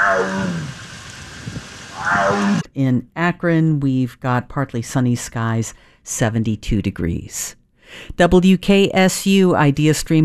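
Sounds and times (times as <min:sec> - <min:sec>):
Sumatran tiger growling at a zoo: 0:00.0 - 0:02.6
speech: 0:02.8 - 0:10.2.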